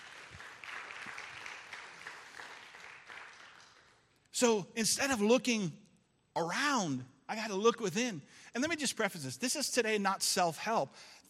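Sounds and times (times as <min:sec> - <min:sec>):
audience applause: 0:00.0 - 0:04.1
speech: 0:04.4 - 0:05.8, 0:06.4 - 0:11.2.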